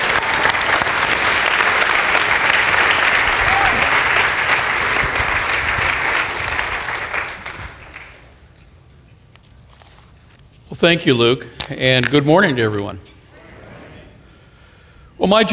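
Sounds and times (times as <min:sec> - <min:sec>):
audience applause: 0:00.0 - 0:08.4
speech: 0:10.8 - 0:13.1, 0:15.2 - 0:15.5.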